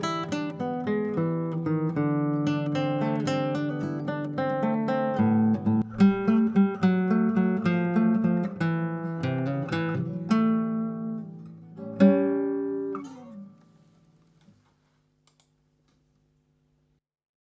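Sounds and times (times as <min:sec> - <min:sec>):
acoustic blues music: 0:00.0 - 0:13.9.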